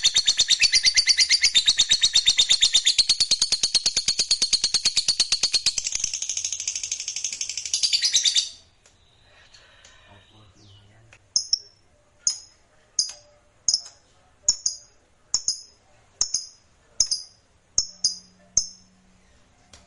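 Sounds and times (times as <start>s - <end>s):
lovebird chattering and chirping: 0.0s - 8.6s, 10.6s - 18.8s.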